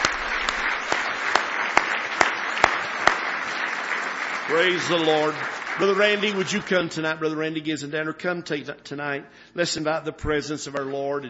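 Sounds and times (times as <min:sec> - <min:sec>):
audience clapping rhythmically: 0:00.0 - 0:07.6
speech: 0:04.5 - 0:11.2.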